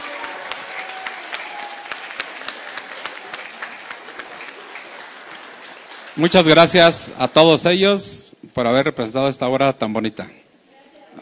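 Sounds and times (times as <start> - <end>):
audience applause: 0.0 - 7.0
speech: 6.2 - 10.4.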